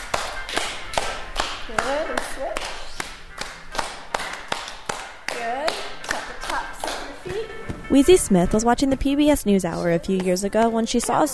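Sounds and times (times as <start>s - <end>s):
hands clapping in rhythm: 0.0s - 7.4s
speech: 1.7s - 2.8s, 7.9s - 11.3s.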